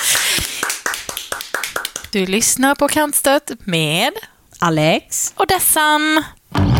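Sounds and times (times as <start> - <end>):
hand claps: 0.0 - 2.2
speech: 2.1 - 6.6.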